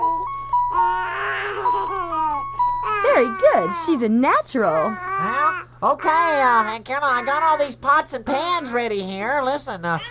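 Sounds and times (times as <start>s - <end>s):
musical calculator keys being punched: 0.0s - 3.9s
speech: 3.2s - 10.1s.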